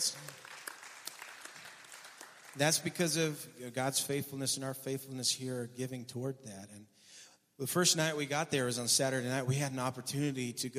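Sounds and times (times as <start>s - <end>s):
audience clapping: 0.0s - 3.1s
speech: 2.6s - 7.0s, 7.6s - 10.7s.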